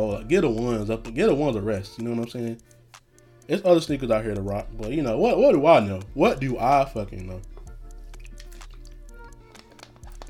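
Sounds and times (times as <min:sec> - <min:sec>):
speech: 0:00.0 - 0:02.8, 0:03.5 - 0:07.5
person taking a swig of water: 0:08.0 - 0:09.0.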